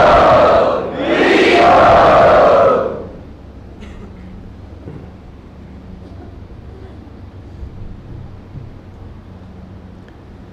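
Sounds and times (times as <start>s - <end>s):
audience roaring cheers at a temple gathering for Sri Sri Radha Gopinath: 0.0s - 3.2s.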